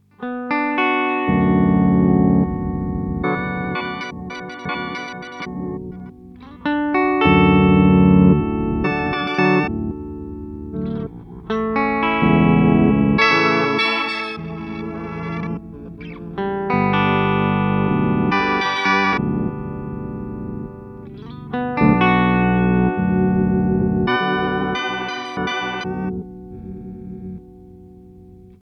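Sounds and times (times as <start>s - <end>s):
Chase Bliss Blooper looper pedal effect: 0.0s - 28.6s.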